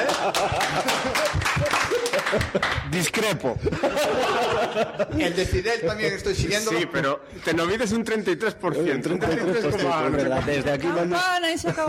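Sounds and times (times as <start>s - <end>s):
applause sound effect: 0.0s - 3.3s
laughter: 0.0s - 6.6s, 8.8s - 11.8s
speech: 0.3s - 1.3s, 2.3s - 11.8s.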